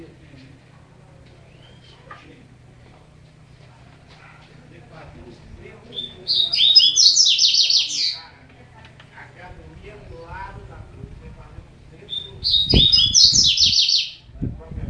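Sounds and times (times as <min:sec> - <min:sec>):
double-collared seedeater singing fast bright chattering notes: 0:05.9 - 0:08.2, 0:12.1 - 0:14.3.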